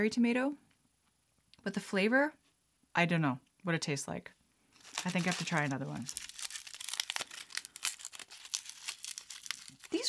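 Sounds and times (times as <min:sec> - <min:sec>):
speech: 0:00.0 - 0:00.6, 0:01.6 - 0:06.2
papery gooseberry husk being peeled from the fruit: 0:04.8 - 0:10.0.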